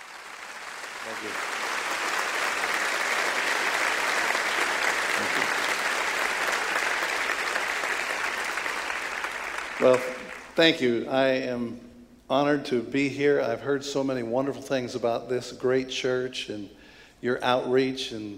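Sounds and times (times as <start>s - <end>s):
audience applause in a church welcoming a guest speaker: 0.0s - 10.6s
speech: 1.1s - 1.7s, 9.8s - 18.3s.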